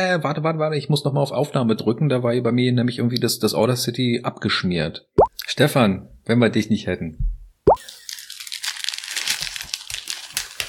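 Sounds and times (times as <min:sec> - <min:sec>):
speech: 0:00.0 - 0:07.3
Kinder chocolate bar and Schokobons wrappers crinkling: 0:07.8 - 0:10.6.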